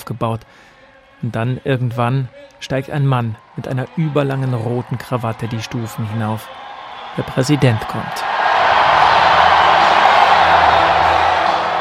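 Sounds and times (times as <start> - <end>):
speech: 0.1 - 6.6, 7.2 - 8.4
crowd applause: 3.4 - 11.7.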